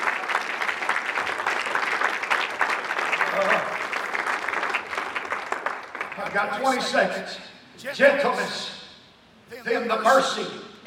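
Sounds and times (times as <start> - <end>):
audience clapping: 0.0 - 6.9
speech: 6.3 - 8.8, 9.6 - 10.6.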